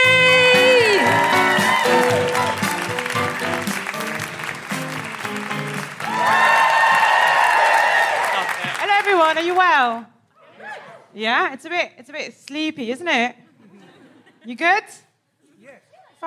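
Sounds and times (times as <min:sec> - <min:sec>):
live comedy audience whooping woo-hoo calls at the Edinburgh Fringe: 0:00.0 - 0:08.8
live comedy audience clapping at the Edinburgh Fringe: 0:00.0 - 0:10.0
speech: 0:09.3 - 0:10.1, 0:11.1 - 0:13.4, 0:14.4 - 0:15.0, 0:15.6 - 0:16.2.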